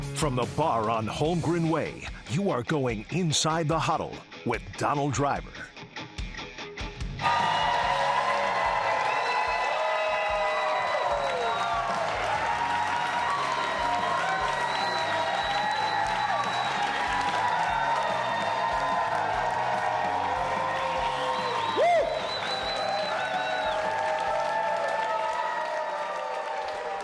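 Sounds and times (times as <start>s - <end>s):
speech: 0.2s - 5.7s
bar crowd applauding and cheering: 7.2s - 27.0s
sharp whistle: 14.4s - 17.0s, 21.0s - 23.9s.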